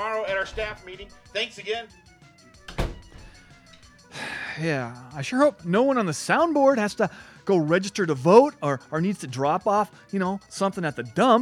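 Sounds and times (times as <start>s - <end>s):
speech: 0.0s - 2.1s, 4.6s - 11.4s
door being shut: 0.3s - 1.3s, 2.6s - 3.9s.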